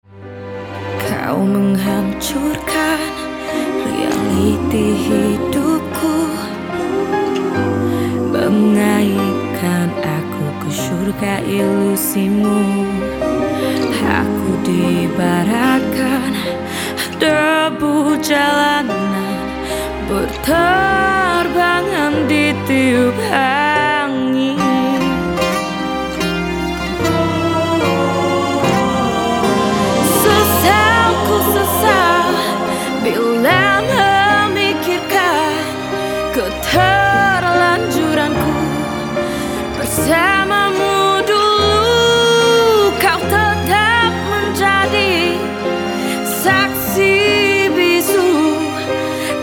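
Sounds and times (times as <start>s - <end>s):
ballad: 0.0s - 49.4s.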